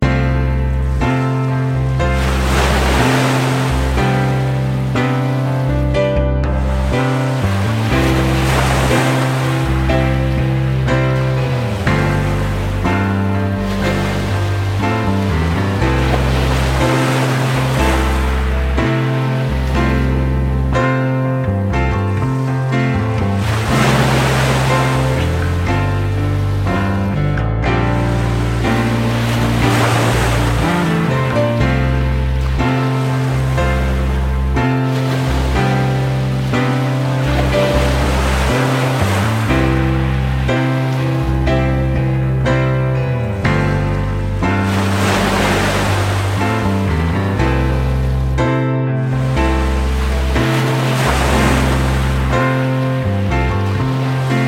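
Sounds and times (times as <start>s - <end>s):
slow piano music: 0.0s - 54.4s.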